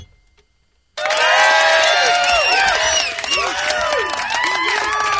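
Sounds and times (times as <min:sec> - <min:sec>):
crowd cheering at live performance: 0:01.0 - 0:05.1.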